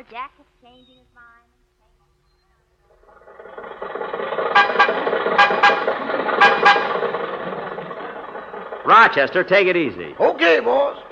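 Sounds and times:
speech: 0.0 - 1.6, 8.8 - 11.0
old Maxwell car rumbling and rattling while driving toward Hollywood: 2.9 - 11.1
old Maxwell car horn honking loud and brassy: 3.9 - 9.0.

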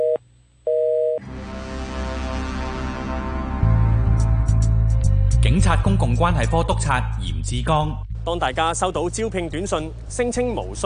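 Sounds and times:
electronic telephone beeps: 0.0 - 1.2
dramatic music with low pulsing notes: 1.2 - 10.8
speech: 5.5 - 10.8.

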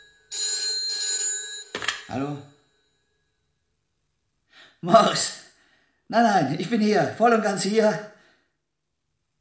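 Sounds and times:
telephone ringing: 0.0 - 3.1
speech: 2.1 - 2.5, 4.8 - 5.5, 6.1 - 8.1.

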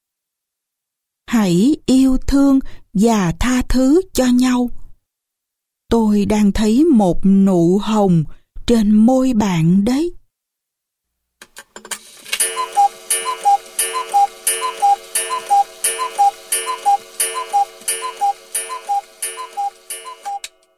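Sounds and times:
speech: 1.3 - 4.8, 5.9 - 10.2
wall clock ticking steadily: 12.4 - 20.6.

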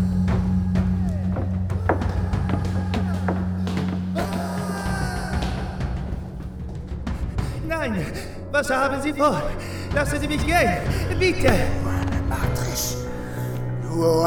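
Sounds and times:
quick footsteps running up a bell tower staircase: 0.0 - 8.2
steady low hum: 0.0 - 14.2
speech: 7.9 - 11.8, 14.0 - 14.2.

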